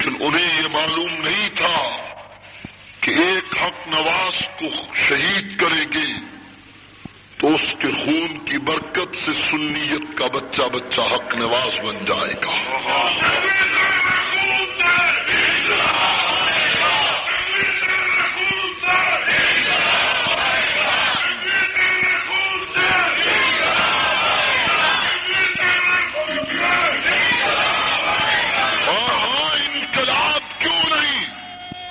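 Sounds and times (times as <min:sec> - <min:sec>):
speech: 0:00.2 - 0:01.7, 0:03.1 - 0:06.4, 0:07.4 - 0:13.9
large crowd chanting a religious slogan: 0:12.5 - 0:30.6.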